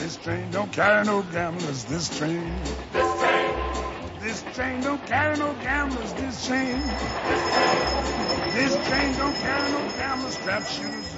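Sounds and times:
train wheels rumbling and clacking over rails: 0:00.0 - 0:11.1
speech: 0:00.1 - 0:03.2, 0:04.2 - 0:11.1
thin high metallic squeal of train wheels: 0:06.4 - 0:11.1.

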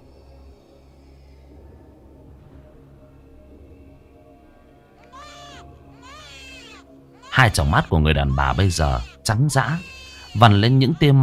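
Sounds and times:
infant eerie wavering wail late at night: 0:05.0 - 0:11.2
speech: 0:07.4 - 0:11.2.

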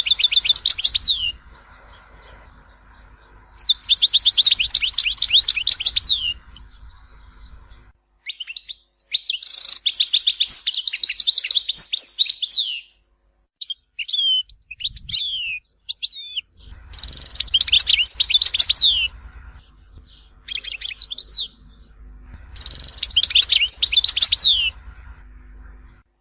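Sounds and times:
low hum: 0:00.0 - 0:08.2, 0:16.4 - 0:26.2
European goldfinch twittering song: 0:00.0 - 0:12.9, 0:13.7 - 0:19.2, 0:20.0 - 0:21.9, 0:22.5 - 0:24.9.

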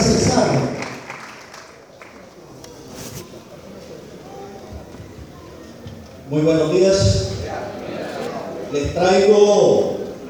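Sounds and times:
faint audience applause at a regional association gathering welcoming a speaker: 0:00.0 - 0:02.6
speech: 0:06.3 - 0:07.3, 0:08.7 - 0:09.9.

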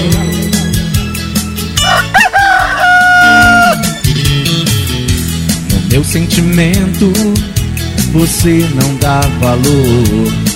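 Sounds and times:
loud thumping music during a live DJ set: 0:01.0 - 0:10.5
rooster crow sound effect: 0:01.8 - 0:04.2
speech: 0:06.0 - 0:07.5, 0:08.1 - 0:10.5.

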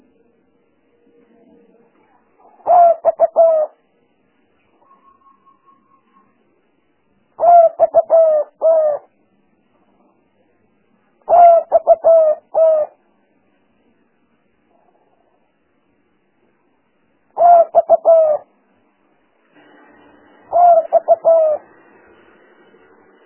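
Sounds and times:
spotted dove cooing: 0:02.4 - 0:03.8, 0:07.4 - 0:09.1, 0:11.2 - 0:13.0, 0:17.4 - 0:18.5, 0:20.5 - 0:21.8.

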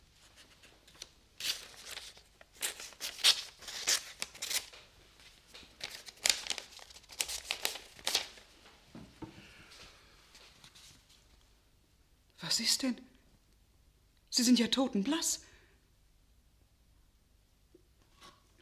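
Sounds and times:
paper letter crinkling as it is unfolded and opened: 0:00.2 - 0:08.5
speech: 0:12.6 - 0:13.1, 0:14.4 - 0:15.5.

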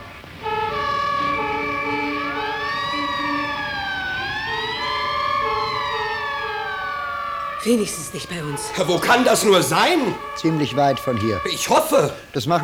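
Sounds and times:
emergency vehicle sirens: 0:00.0 - 0:12.6
laughter: 0:07.6 - 0:12.6
speech: 0:07.6 - 0:12.6.

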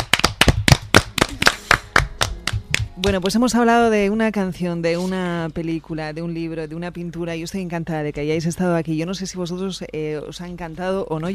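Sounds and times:
schoolchildren clapping after a performance: 0:00.0 - 0:03.3
speech: 0:03.0 - 0:11.3.

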